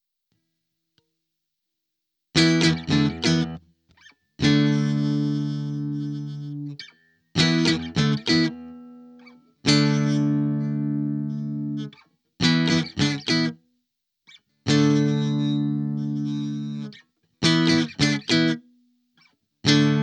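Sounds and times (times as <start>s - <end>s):
guitar on a working tape: 2.4s - 20.0s.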